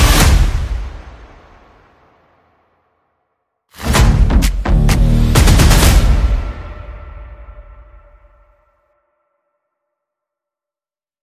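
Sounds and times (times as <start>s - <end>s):
upbeat victory music beat: 3.8s - 7.0s.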